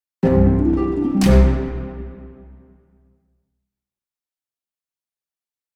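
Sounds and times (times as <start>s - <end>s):
positive orchestral jingle: 0.2s - 2.8s.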